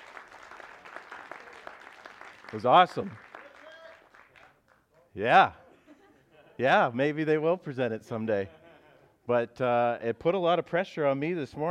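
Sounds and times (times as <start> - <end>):
audience applause: 0.0 - 4.8
speech: 2.5 - 3.2, 5.2 - 5.6, 6.6 - 8.6, 9.3 - 11.6.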